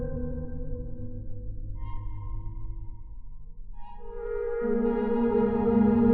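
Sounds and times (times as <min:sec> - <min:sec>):
MIDI flute: 0:03.8 - 0:06.1.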